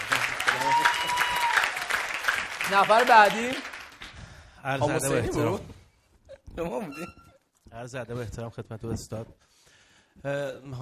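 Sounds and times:
audience applause: 0:00.0 - 0:04.4
speech: 0:02.7 - 0:03.7, 0:04.6 - 0:05.7, 0:06.6 - 0:07.2, 0:07.8 - 0:09.5, 0:10.2 - 0:10.7.

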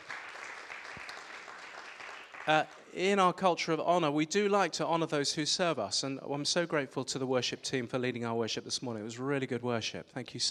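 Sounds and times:
church congregation applauding the worship team during a morning service: 0:00.0 - 0:02.9
speech: 0:02.4 - 0:10.4.

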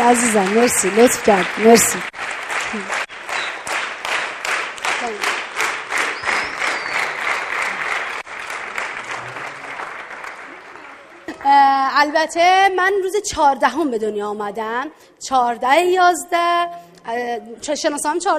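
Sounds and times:
audience applause: 0:00.0 - 0:11.5
speech: 0:00.1 - 0:03.0, 0:12.0 - 0:18.3.

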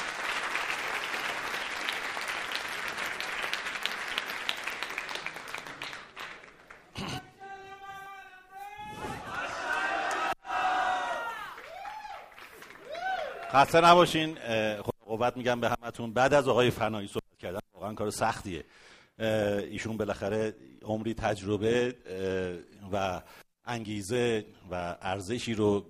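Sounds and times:
audience applause: 0:00.0 - 0:07.1, 0:09.3 - 0:13.7
raised voices calling out and cheering: 0:07.2 - 0:12.2
speech: 0:13.5 - 0:25.8.

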